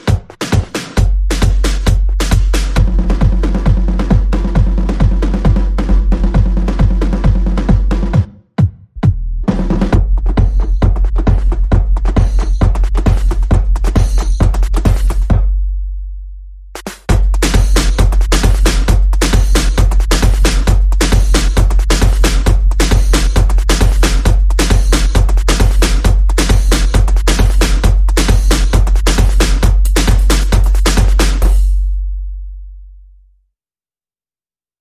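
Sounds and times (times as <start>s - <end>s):
drums and percussion: 0.0s - 15.6s, 16.8s - 31.9s.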